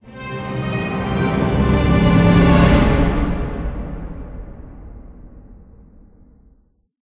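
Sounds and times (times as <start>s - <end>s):
music stinger: 0.0s - 5.2s.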